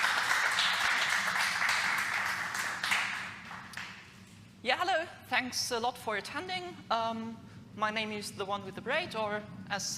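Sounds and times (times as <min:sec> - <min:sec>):
audience applause: 0:00.0 - 0:03.9
speech: 0:04.6 - 0:09.9.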